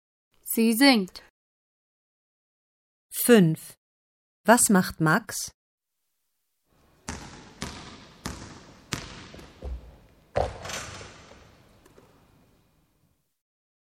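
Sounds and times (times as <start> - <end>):
speech: 0.5 - 1.3, 3.2 - 3.8, 4.5 - 5.6, 10.4 - 10.6
basketball bouncing during play: 6.8 - 12.3.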